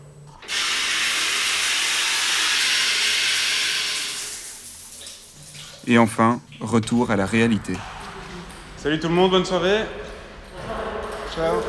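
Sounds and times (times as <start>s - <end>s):
shower running: 0.4s - 11.6s
speech: 5.9s - 7.9s, 8.8s - 10.0s, 11.4s - 11.6s.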